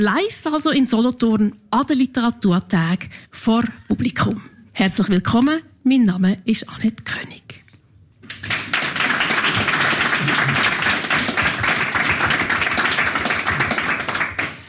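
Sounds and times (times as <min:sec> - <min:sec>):
speech: 0:00.0 - 0:07.6
crowd applauding at a live event: 0:08.2 - 0:14.6.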